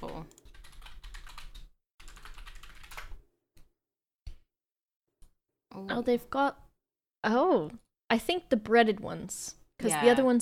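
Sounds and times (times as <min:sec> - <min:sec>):
typing on a computer keyboard: 0:00.0 - 0:03.2
speech: 0:05.8 - 0:06.6, 0:07.2 - 0:10.4.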